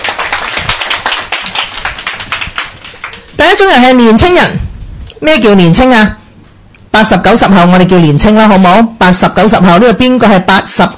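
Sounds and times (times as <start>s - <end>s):
audience clapping: 0.0s - 3.4s
speech: 3.6s - 4.6s, 5.2s - 6.2s, 6.9s - 10.9s.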